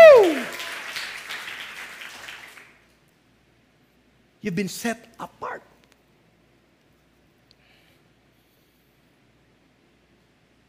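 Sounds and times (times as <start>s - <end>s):
church congregation applauding during a worship service: 0.0s - 2.9s
speech: 4.4s - 5.6s.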